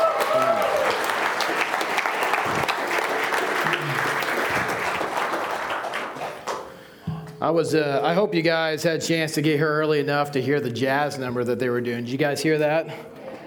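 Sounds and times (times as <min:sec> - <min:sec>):
audience applauding the band: 0:00.0 - 0:06.8
speech: 0:07.5 - 0:13.1.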